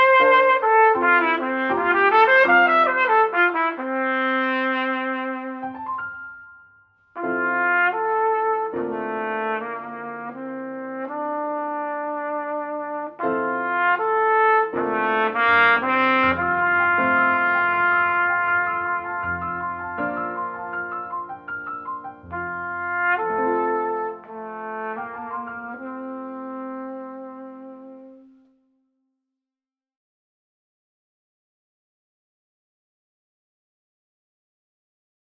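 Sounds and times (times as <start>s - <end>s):
trumpet: 0.0s - 5.9s, 7.2s - 28.6s
piano: 0.0s - 28.7s.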